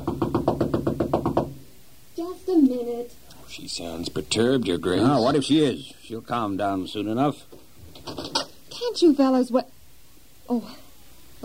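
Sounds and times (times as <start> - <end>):
knocking on a door: 0.0 - 1.7
speech: 2.4 - 8.2, 8.9 - 9.8, 10.5 - 10.8.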